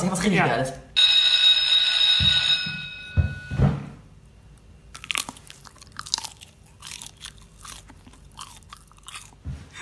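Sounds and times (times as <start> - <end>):
tonal jingle: 1.0 - 3.6
chewing crunchy chips: 4.9 - 9.7.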